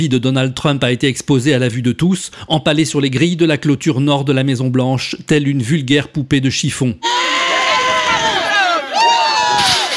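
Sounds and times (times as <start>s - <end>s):
speech: 0.0s - 7.3s
crowd cheering: 7.0s - 9.9s.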